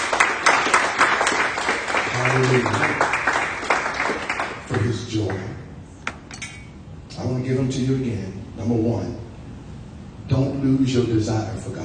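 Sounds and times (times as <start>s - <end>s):
audience hand clapping: 0.0s - 5.5s
speech: 2.3s - 3.0s, 7.6s - 9.2s, 10.8s - 11.8s.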